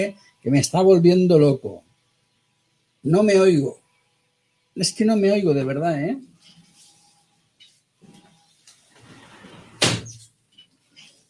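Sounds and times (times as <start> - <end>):
speech: 0.0 - 1.8, 3.0 - 3.8, 4.8 - 6.3
balcony door sliding with a rough rattling scrape: 9.0 - 10.2
balcony door shutting with a loud sharp thud: 9.6 - 10.2.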